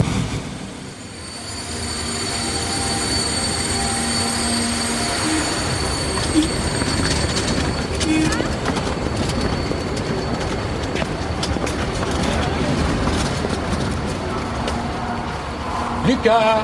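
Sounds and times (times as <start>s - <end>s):
train arriving at railway station: 0.0s - 16.6s
train wheel squeals: 0.9s - 16.1s
speech: 16.2s - 16.6s.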